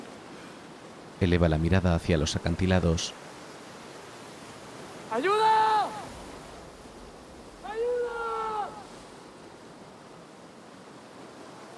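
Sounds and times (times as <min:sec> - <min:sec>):
speech: 0:01.2 - 0:03.3, 0:05.1 - 0:06.0
waves breaking on rocks below seaside cliffs: 0:03.0 - 0:11.7.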